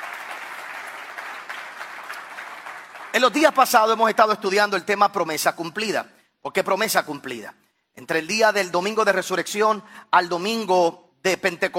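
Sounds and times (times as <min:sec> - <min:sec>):
audience applause: 0:00.0 - 0:03.6
speech: 0:03.2 - 0:11.7.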